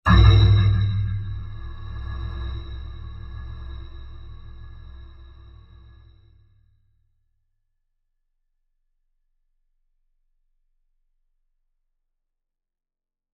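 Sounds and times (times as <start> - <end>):
sci-fi impact with stutter: 0.1 - 6.1.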